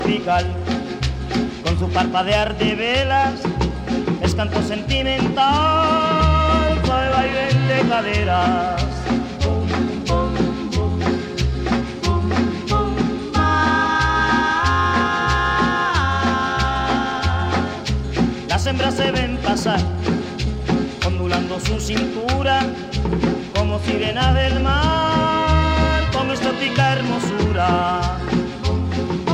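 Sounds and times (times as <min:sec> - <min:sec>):
cumbia music: 0:00.0 - 0:29.3.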